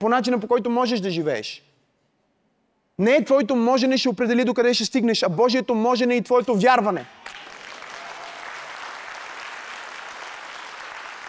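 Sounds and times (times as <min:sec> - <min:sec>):
speech: 0:00.0 - 0:01.7, 0:03.0 - 0:07.4
audience clapping: 0:07.2 - 0:11.2.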